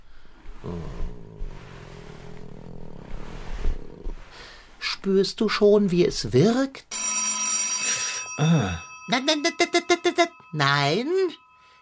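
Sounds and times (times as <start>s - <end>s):
contented cat purring: 0.5s - 4.7s
speech: 0.6s - 1.1s, 5.0s - 6.9s, 8.4s - 11.4s.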